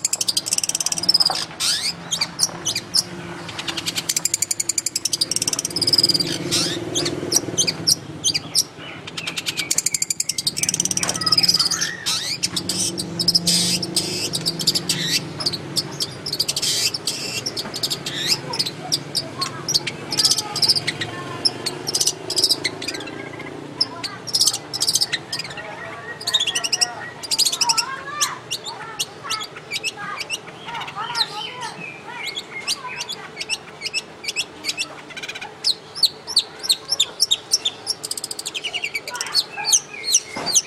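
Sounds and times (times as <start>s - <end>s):
cendet or pentet bird singing varied songs and styles: 0.0s - 40.6s.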